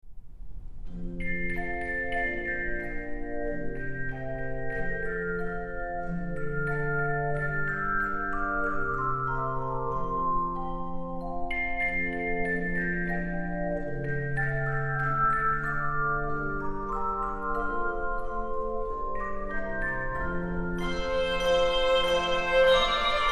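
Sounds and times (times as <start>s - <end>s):
three to five octave handbells playing: 1.2s - 23.3s.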